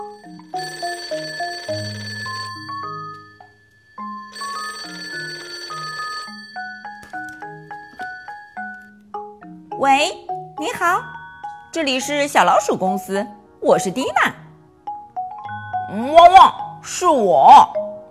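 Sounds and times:
telephone bell ringing: 0.0s - 9.0s, 15.4s - 16.8s
speech: 9.8s - 11.1s, 11.7s - 14.4s, 16.0s - 17.9s.

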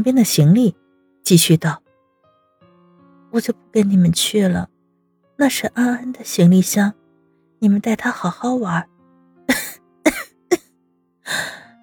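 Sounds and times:
speech: 0.0s - 1.8s, 3.3s - 4.7s, 5.4s - 7.0s, 7.6s - 8.9s, 9.5s - 9.7s
violent choking cough: 9.5s - 10.6s.

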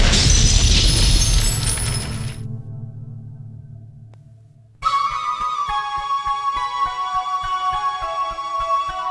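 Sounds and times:
heavy stone crashing down: 0.0s - 2.5s
sustained tonal music: 2.4s - 9.0s.

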